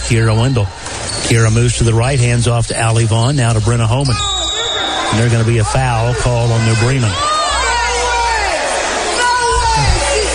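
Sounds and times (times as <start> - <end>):
speech: 0.1 - 4.3, 5.1 - 7.3
New Bremen basketball fans shouting in protest: 4.2 - 10.3.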